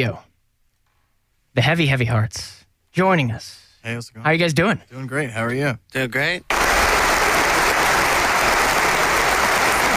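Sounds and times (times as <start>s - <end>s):
speech: 0.0s - 0.3s, 1.6s - 6.7s
studio audience applause, standing ovation: 6.5s - 9.9s.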